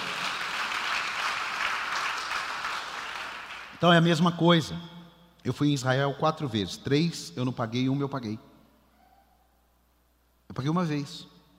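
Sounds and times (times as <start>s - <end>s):
crowd applause: 0.0s - 3.8s
speech: 3.8s - 8.5s, 10.6s - 11.3s.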